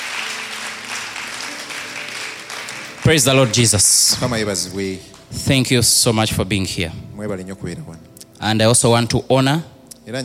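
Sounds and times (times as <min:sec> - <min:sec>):
church congregation clapping hands: 0:00.0 - 0:05.3
speech: 0:03.1 - 0:10.2.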